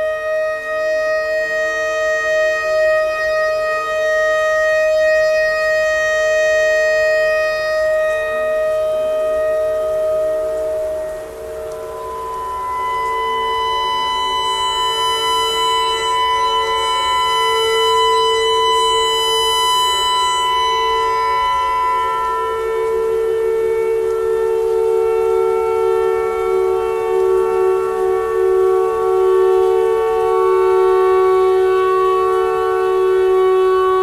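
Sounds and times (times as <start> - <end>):
clarinet notes: 0.0 - 34.0
noise: 0.0 - 34.0
tornado siren: 0.0 - 34.0.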